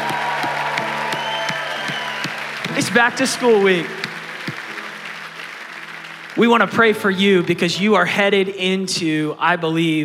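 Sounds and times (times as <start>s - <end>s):
students clapping in a steady rhythm: 0.0s - 7.2s
crowd noise: 0.0s - 8.6s
speech: 2.8s - 4.0s, 6.4s - 10.0s.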